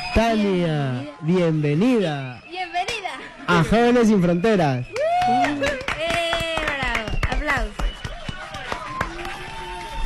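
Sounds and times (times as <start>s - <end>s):
speech: 0.1s - 2.8s, 3.5s - 5.9s
audience clapping in welcome: 4.9s - 9.9s.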